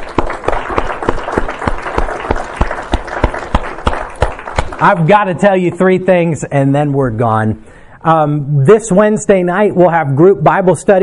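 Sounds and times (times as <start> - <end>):
audience applause: 0.0 - 5.1
speech: 4.8 - 11.0.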